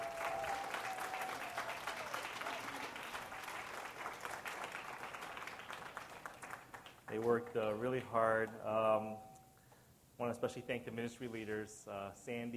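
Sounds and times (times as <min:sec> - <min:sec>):
audience applause: 0:00.0 - 0:07.4
speech: 0:07.1 - 0:09.3, 0:10.2 - 0:12.5.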